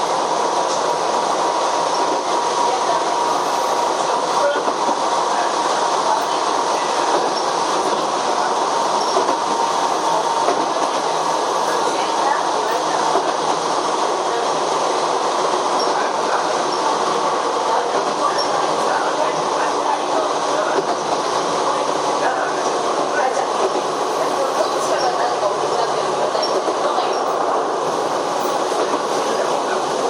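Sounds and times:
Chichibu Railway 7500 series train rolling between Hanyu and Kumagaya: 0.0 - 30.0.

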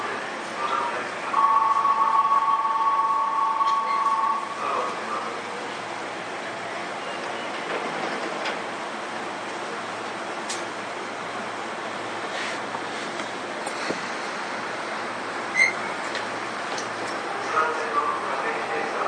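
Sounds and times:
voices: 0.0 - 7.8, 16.8 - 19.0
Sotetsu 7000 series train rumbling between Yokohama and Daiwa: 0.0 - 19.0.

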